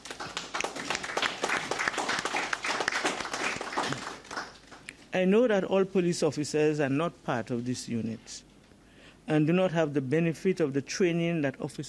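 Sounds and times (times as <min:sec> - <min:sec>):
audience applause: 0:00.0 - 0:04.9
speech: 0:05.2 - 0:08.5, 0:09.3 - 0:11.8.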